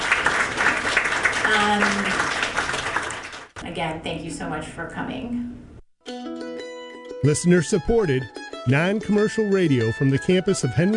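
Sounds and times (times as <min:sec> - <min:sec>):
audience applause: 0:00.0 - 0:03.6
speech: 0:03.8 - 0:06.2, 0:07.2 - 0:10.9.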